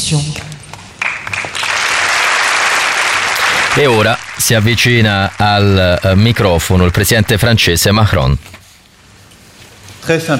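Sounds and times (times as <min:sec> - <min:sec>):
speech: 0:00.1 - 0:00.5, 0:03.8 - 0:08.6, 0:10.1 - 0:10.3
audience applause: 0:01.0 - 0:08.4.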